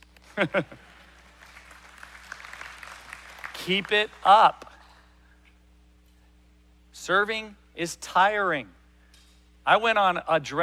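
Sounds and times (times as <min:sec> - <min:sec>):
golf clap: 0:00.0 - 0:05.0
speech: 0:00.4 - 0:00.9, 0:03.7 - 0:04.6, 0:07.0 - 0:08.8, 0:09.6 - 0:10.6.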